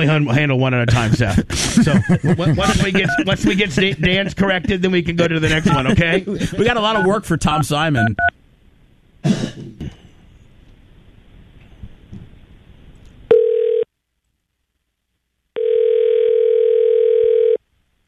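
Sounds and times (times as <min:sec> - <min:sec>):
speech: 0:00.0 - 0:08.3, 0:09.2 - 0:09.6
laughter: 0:00.9 - 0:07.1
person coughing: 0:09.2 - 0:10.1
throat clearing: 0:09.2 - 0:10.2
telephone line tone: 0:13.3 - 0:13.9, 0:15.6 - 0:17.6.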